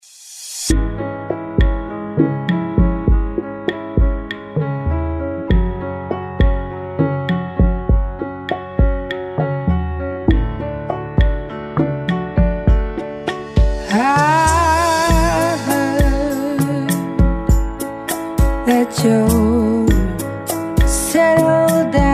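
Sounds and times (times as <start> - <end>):
ballroom rumba music: 0.7 - 22.0.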